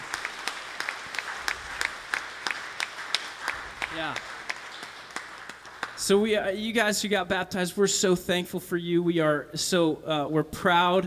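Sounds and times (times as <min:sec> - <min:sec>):
audience applause: 0:00.0 - 0:07.8
speech: 0:04.0 - 0:04.3, 0:06.0 - 0:11.0.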